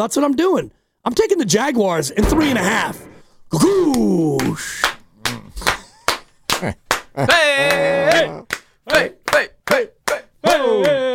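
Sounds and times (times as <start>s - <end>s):
speech: 0.0s - 5.0s, 6.6s - 11.1s
people clapping: 3.7s - 11.1s.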